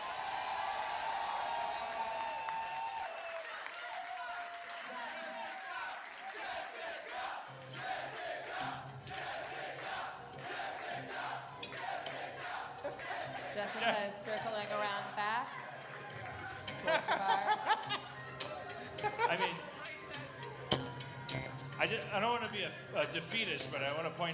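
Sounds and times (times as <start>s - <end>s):
whoops and shouts: 0.0s - 3.4s
audience cheering and applauding: 0.0s - 23.6s
laughter: 11.7s - 20.7s
speech: 13.6s - 15.6s, 16.8s - 18.1s, 19.1s - 19.7s, 21.8s - 24.3s.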